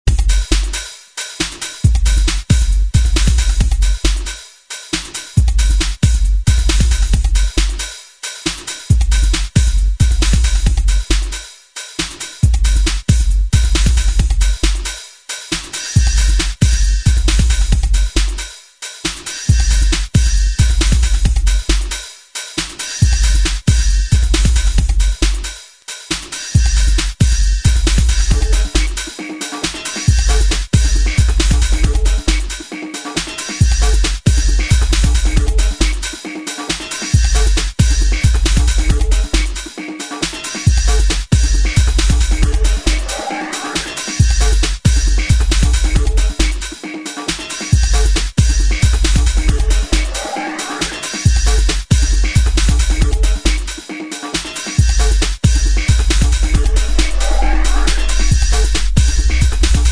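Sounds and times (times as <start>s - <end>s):
driving percussion: 0.0s - 59.8s.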